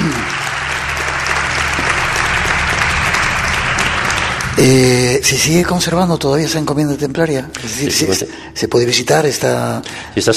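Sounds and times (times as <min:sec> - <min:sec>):
audience applause: 0:00.0 - 0:06.0
speech: 0:04.6 - 0:10.3.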